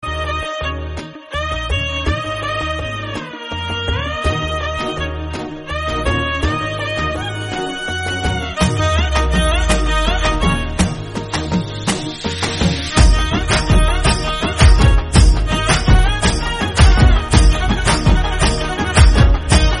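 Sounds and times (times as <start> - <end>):
background music: 0.0 - 19.7.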